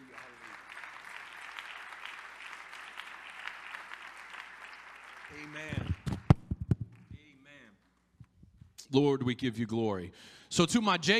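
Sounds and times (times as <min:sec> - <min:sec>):
audience clapping hands: 0:00.0 - 0:08.4
speech: 0:05.4 - 0:06.0, 0:08.9 - 0:11.1.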